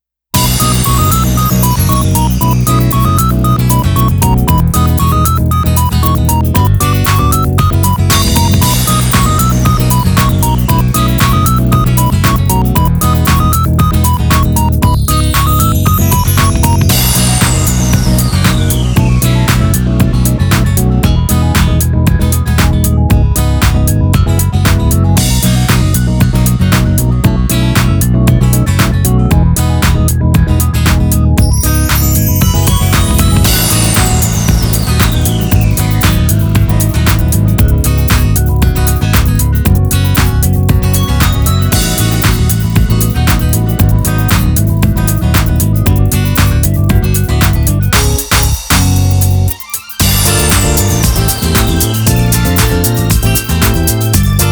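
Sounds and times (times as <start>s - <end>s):
instrumental music: 0.4s - 54.5s.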